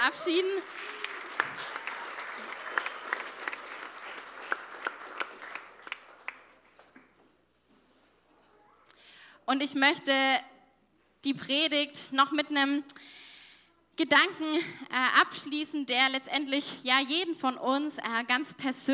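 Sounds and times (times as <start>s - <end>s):
speech: 0.0s - 1.0s, 9.5s - 10.5s, 11.2s - 13.2s, 14.0s - 18.9s
audience applause: 0.0s - 6.8s.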